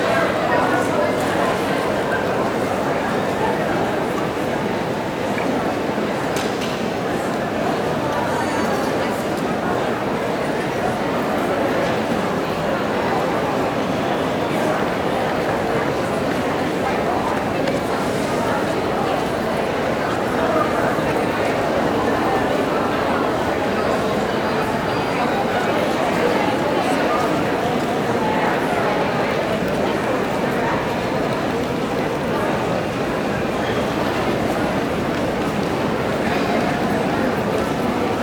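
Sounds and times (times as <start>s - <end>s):
busy train at a station: 0.0s - 38.2s
walla at a busy train station: 0.0s - 38.2s.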